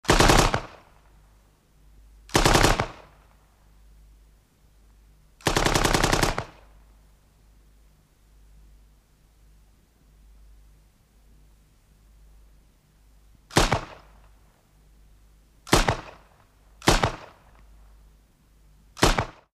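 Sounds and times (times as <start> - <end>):
machine gun firing: 0.0 - 0.9, 2.3 - 3.2, 5.4 - 6.7, 13.5 - 14.1, 15.7 - 17.4, 19.0 - 19.5.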